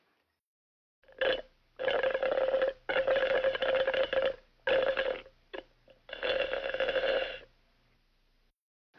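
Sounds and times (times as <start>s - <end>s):
juice slurped through a straw: 1.1s - 7.5s.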